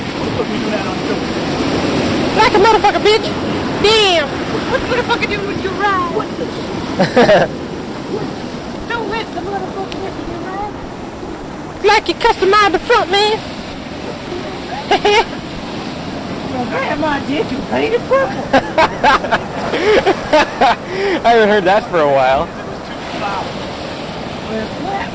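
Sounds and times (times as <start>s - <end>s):
ocean at a beach: 0.0s - 25.1s
people chatting on a beach: 0.2s - 1.3s, 2.4s - 6.5s, 8.1s - 10.8s, 11.8s - 13.4s, 14.0s - 15.3s, 16.5s - 19.4s, 20.3s - 23.5s, 24.5s - 25.1s
laughter: 6.0s - 8.4s, 14.0s - 15.5s, 17.5s - 23.4s.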